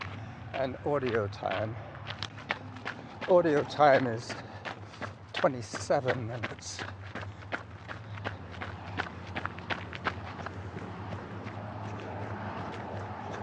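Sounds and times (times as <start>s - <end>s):
running footsteps on grass: 0.0s - 13.4s
speech: 0.6s - 1.9s, 3.3s - 7.0s.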